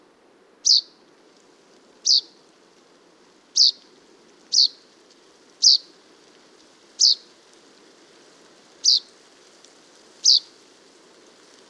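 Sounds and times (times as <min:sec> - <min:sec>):
common chaffinch Fringilla coelebs calls: 0:00.6 - 0:00.9, 0:02.0 - 0:02.3, 0:03.6 - 0:03.8, 0:04.5 - 0:04.8, 0:05.6 - 0:05.8, 0:07.0 - 0:07.2, 0:08.8 - 0:09.1, 0:10.2 - 0:10.5.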